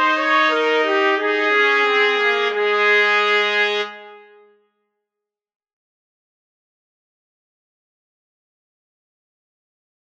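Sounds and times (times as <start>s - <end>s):
two trumpets playing: 0.0s - 4.4s.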